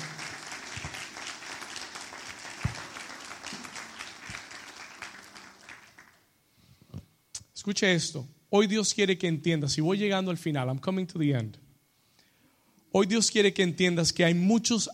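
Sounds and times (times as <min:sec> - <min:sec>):
loud crowd applause: 0:00.0 - 0:06.2
speech: 0:07.7 - 0:11.6, 0:13.0 - 0:14.9.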